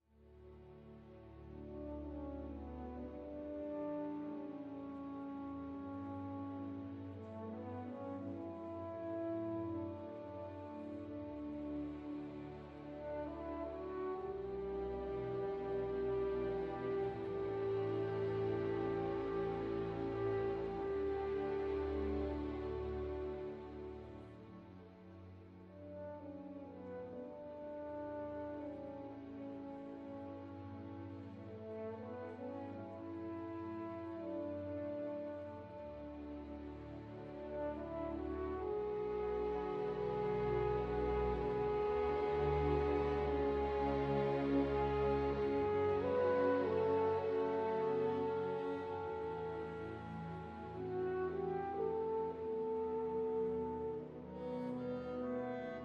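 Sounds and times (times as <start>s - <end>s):
symphony: 0.0s - 55.8s.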